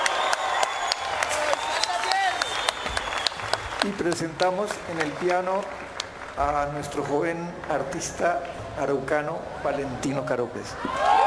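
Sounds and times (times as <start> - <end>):
audience applause: 0.0 - 7.8
speech: 3.8 - 11.1.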